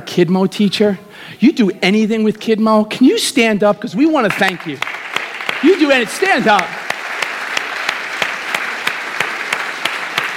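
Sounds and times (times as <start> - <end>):
speech: 0.1 - 4.9, 5.6 - 6.8
weak audience clapping: 4.3 - 10.3.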